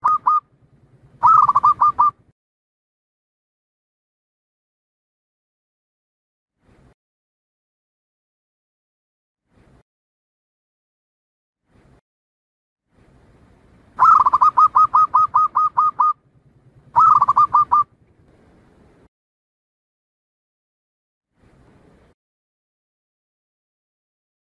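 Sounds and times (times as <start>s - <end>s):
Zebra dove staccato cooing song: 0.0s - 0.4s, 1.2s - 2.2s, 14.0s - 16.2s, 16.9s - 17.9s.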